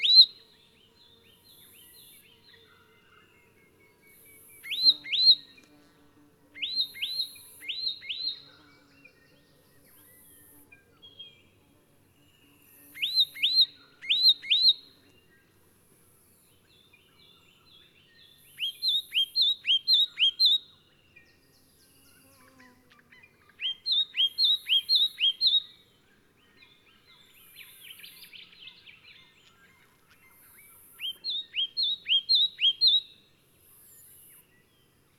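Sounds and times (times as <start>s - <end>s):
Myiagra rubecula leaden flycatcher calling: 0.0s - 0.5s, 4.1s - 5.7s, 6.6s - 8.6s, 12.8s - 14.9s, 18.5s - 20.7s, 22.3s - 25.8s, 30.2s - 33.2s.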